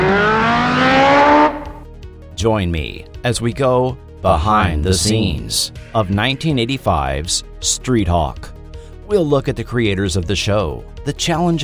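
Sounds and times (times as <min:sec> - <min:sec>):
high-speed motorcycle engine roaring: 0:00.0 - 0:01.9
speech: 0:02.4 - 0:08.5, 0:09.1 - 0:11.6.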